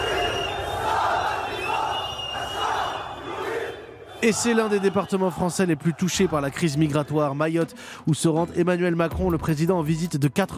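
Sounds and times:
protest crowd chanting: 0:00.0 - 0:06.9
speech: 0:04.2 - 0:10.5.

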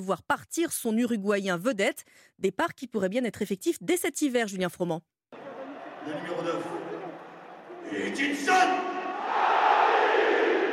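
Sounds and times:
speech: 0:00.0 - 0:05.2, 0:06.0 - 0:06.9, 0:07.9 - 0:09.5
stadium crowd cheering Edinson Cavani's goal for Paris Saint-Germain: 0:05.3 - 0:10.7.

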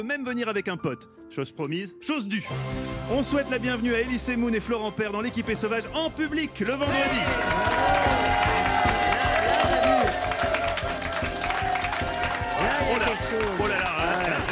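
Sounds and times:
speech: 0:00.0 - 0:08.7
man vocally imitating audience applause and cheering: 0:06.8 - 0:14.5.

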